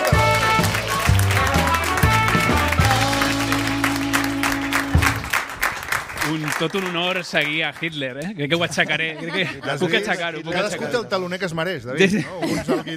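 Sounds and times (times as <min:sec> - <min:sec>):
band playing brassy entrance tune: 0:00.0 - 0:05.5
theatre audience applause welcoming a guest: 0:00.0 - 0:08.0
speech: 0:06.6 - 0:12.9
laughter: 0:08.4 - 0:11.0, 0:12.0 - 0:12.9.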